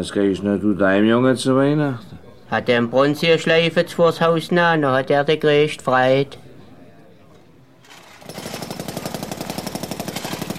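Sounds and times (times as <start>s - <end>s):
speech: 0.0s - 6.4s
jackhammer pounding: 7.8s - 10.5s.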